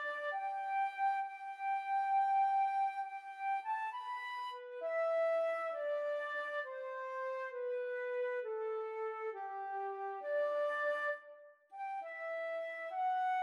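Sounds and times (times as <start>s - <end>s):
pastoral flute duet: 0.0s - 13.4s.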